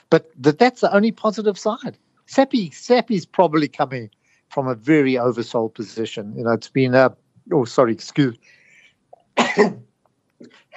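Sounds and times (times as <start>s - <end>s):
speech: 0.1s - 8.6s, 9.4s - 10.7s
faint breathy noises: 4.2s - 4.6s, 8.4s - 9.0s
person sneezing: 9.4s - 9.8s.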